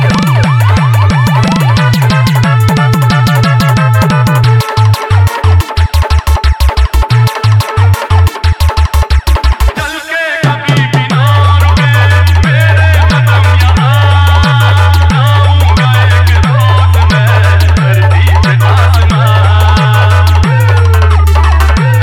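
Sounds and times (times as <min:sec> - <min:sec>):
ambulance horn: 0:00.0 - 0:05.6
humming bass: 0:00.0 - 0:09.7, 0:11.1 - 0:22.0.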